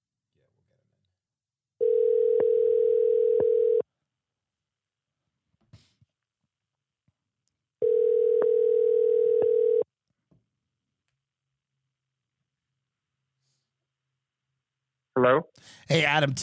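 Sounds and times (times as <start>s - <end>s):
phone ringback tone: 1.8s - 3.8s, 7.8s - 9.8s
speech: 15.2s - 16.4s.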